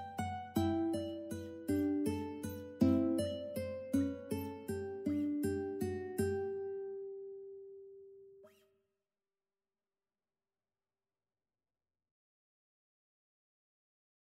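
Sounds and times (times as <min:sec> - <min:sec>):
ukulele playing: 0:00.0 - 0:06.8.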